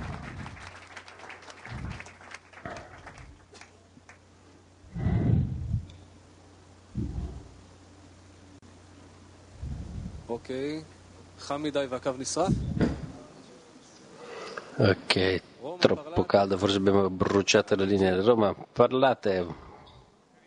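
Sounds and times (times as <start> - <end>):
audience applause: 0.0 - 4.2
faint hum: 0.0 - 20.4
speech: 10.3 - 12.6, 14.8 - 19.6.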